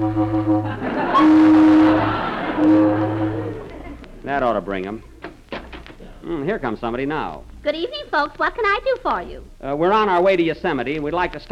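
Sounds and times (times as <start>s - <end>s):
speech: 0.0s - 1.4s, 4.5s - 5.2s, 6.3s - 11.5s
loud car horn honking: 0.0s - 3.7s
laughter: 0.6s - 4.6s.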